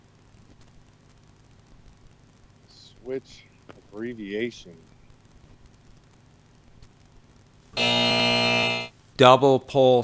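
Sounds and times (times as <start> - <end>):
speech: 3.0 - 4.9, 9.2 - 10.0
game show buzzer: 7.8 - 8.9.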